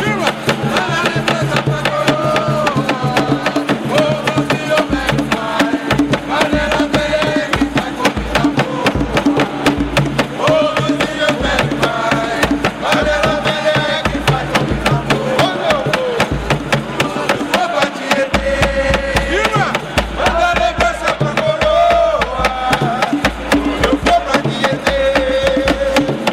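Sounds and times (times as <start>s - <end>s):
batuque drumming from Piracicaba: 0.0s - 26.3s.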